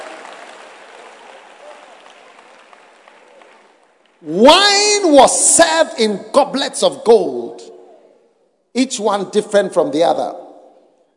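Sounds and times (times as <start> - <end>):
clapping: 0.0 - 4.2
speech: 4.2 - 7.8, 8.8 - 10.4.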